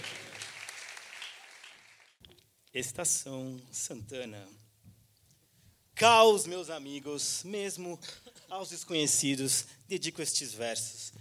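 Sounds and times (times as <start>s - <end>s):
audience applause: 0.0s - 2.2s
speech: 2.8s - 4.7s, 6.0s - 11.1s.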